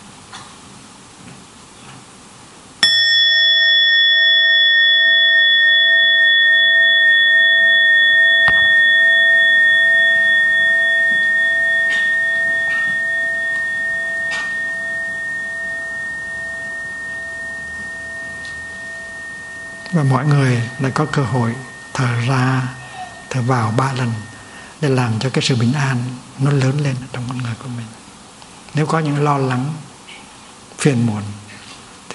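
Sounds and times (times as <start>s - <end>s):
meditation bell being struck: 2.8s - 27.9s
speech: 20.0s - 28.0s, 28.7s - 29.8s, 30.8s - 31.4s.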